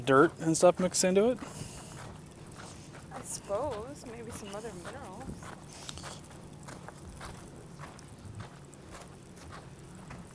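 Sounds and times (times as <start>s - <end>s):
speech: 0.0s - 1.7s
footsteps crunching across a wide open area: 0.0s - 10.3s
broadband hiss: 0.6s - 7.2s.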